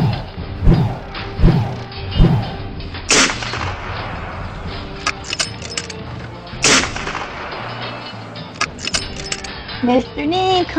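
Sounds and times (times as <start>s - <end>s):
steady rumbling background: 0.0s - 9.7s
loud booming gunshot from a sniper's perch: 3.1s - 4.8s, 6.6s - 8.0s
quieter gunfire cracks: 3.1s - 5.7s, 6.6s - 9.4s
speech: 9.9s - 10.7s.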